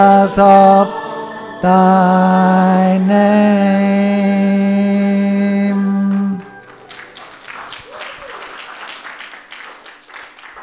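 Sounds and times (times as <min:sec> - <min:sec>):
speech: 0:00.0 - 0:01.0, 0:01.6 - 0:04.8
church congregation clapping after singing a hymn: 0:06.0 - 0:10.6.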